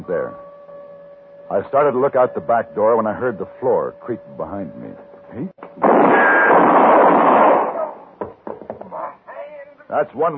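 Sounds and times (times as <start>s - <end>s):
speech: 0.0s - 0.5s, 1.5s - 6.8s, 9.9s - 10.3s
gunshot: 5.8s - 8.1s.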